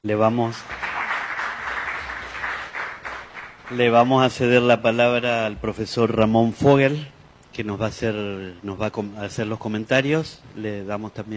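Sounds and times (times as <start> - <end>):
speech: 0.0 - 0.8, 3.7 - 11.3
audience applause: 0.6 - 4.3.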